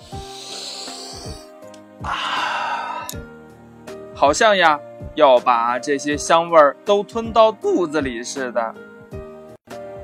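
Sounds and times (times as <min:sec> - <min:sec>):
quick hard sniffs through the nose: 0:00.0 - 0:03.2
speech: 0:04.2 - 0:08.9.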